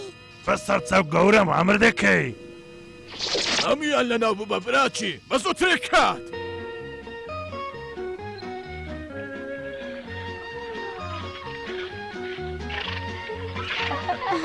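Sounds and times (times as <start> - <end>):
speech: 0.5 - 2.4, 3.2 - 6.4
horse neighing in a dubbed Kurdish cartoon: 11.0 - 14.1
laughter: 13.8 - 14.4.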